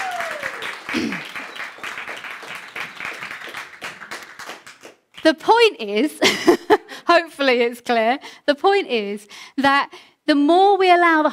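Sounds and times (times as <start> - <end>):
falling whistle-like cry: 0.0 - 3.5
group applauding: 0.0 - 5.3
speech: 5.2 - 11.3.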